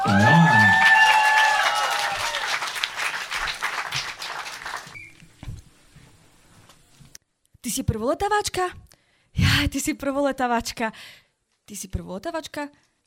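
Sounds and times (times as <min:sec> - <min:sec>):
audience applause: 0:00.0 - 0:05.0
crowd cheering: 0:00.0 - 0:05.1
speech: 0:07.8 - 0:08.8, 0:09.6 - 0:12.9.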